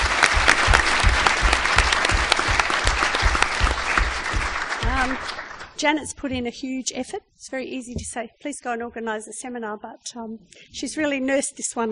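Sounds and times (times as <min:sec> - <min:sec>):
room full of people applauding: 0:00.0 - 0:06.1
speech: 0:05.8 - 0:11.8.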